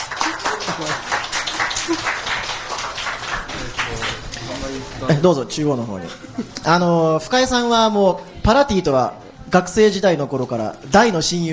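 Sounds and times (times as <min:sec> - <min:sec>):
crowd clapping: 0:00.0 - 0:04.6
speech: 0:05.0 - 0:11.5.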